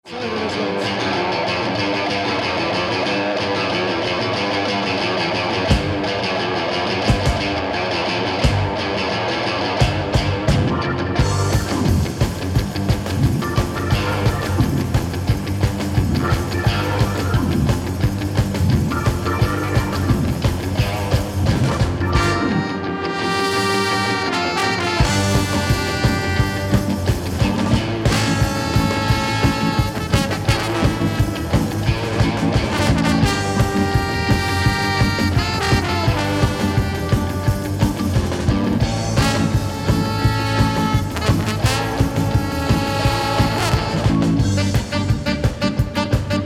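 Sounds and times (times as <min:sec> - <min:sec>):
ska jazz music: 0:00.3 - 0:46.4.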